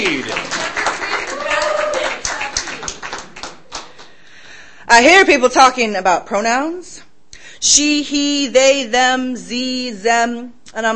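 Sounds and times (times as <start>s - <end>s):
comedy show audience clapping and cheering to welcome a comedian: 0.0s - 4.3s
speech: 5.0s - 10.9s.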